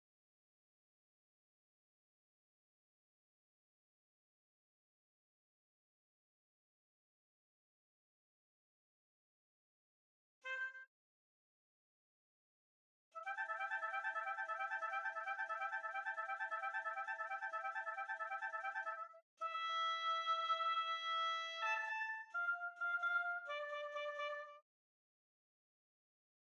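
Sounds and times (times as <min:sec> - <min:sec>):
oboe: 0:10.5 - 0:10.9, 0:13.2 - 0:24.6.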